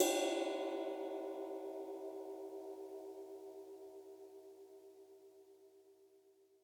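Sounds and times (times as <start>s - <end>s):
ride cymbal: 0.0s - 2.5s.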